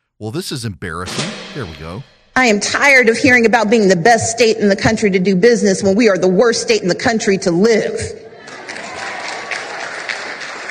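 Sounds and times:
speech: 0:00.2 - 0:08.2
crowd audience applauding: 0:08.6 - 0:10.6.

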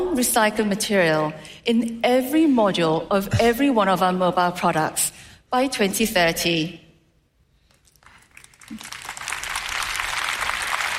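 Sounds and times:
speech: 0:00.2 - 0:06.8, 0:08.7 - 0:09.0
tepid applause from audience: 0:07.9 - 0:10.9.

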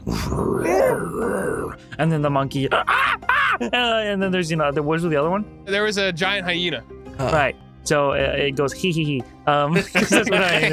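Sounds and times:
voice imitating a tiger's growl: 0:00.0 - 0:01.8
speech: 0:00.0 - 0:10.7
laughter: 0:09.8 - 0:10.7.

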